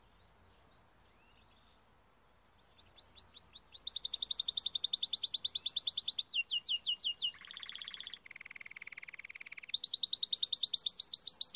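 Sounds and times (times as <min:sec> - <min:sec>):
Timbrado canary singing: 0:02.6 - 0:11.5.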